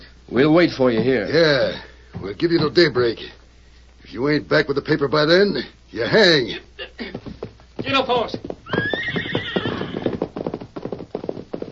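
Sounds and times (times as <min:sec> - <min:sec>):
speech: 0:00.3 - 0:03.4, 0:04.1 - 0:08.8
galloping hoofbeats as the horse rides off: 0:07.0 - 0:11.7
horse whinnying: 0:08.6 - 0:10.4.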